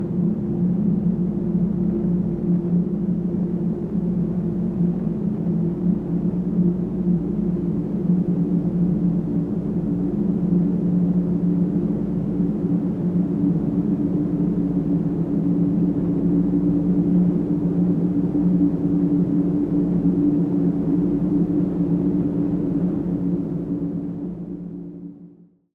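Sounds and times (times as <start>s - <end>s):
synthesized eerie howling whistling wind: 0.0s - 25.3s.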